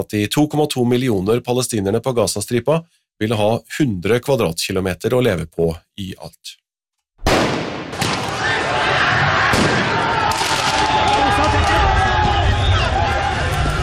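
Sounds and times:
speech: 0.0s - 6.6s
loud bang during football riots in France: 7.2s - 8.6s, 9.4s - 11.2s
firecracker and gunshot-like cracks during football riots in France: 7.3s - 8.5s, 9.5s - 11.1s
dense crowd roar during football riots in France after PSG's Champions League win: 7.9s - 13.8s.

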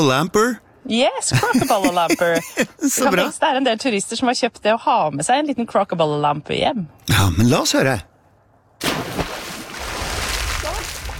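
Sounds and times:
speech: 0.0s - 8.1s
laughter: 1.3s - 3.3s
snorkeler diving into sea water, splashing: 8.8s - 11.1s.

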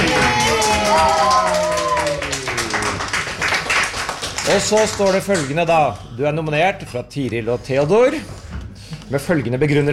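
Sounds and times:
crowd cheering: 0.0s - 3.9s
people clapping: 0.0s - 5.7s
speech: 4.5s - 8.4s, 9.1s - 9.9s.

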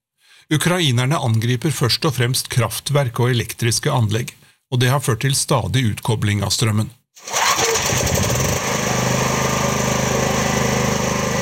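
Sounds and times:
speech: 0.5s - 7.4s
generator engine running outside a house: 7.3s - 11.3s.

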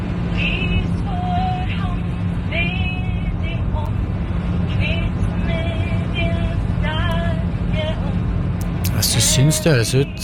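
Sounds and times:
aircraft engine roar in the cabin: 0.0s - 10.2s
faint murmuring voices: 8.9s - 10.2s
speech: 9.4s - 10.2s.

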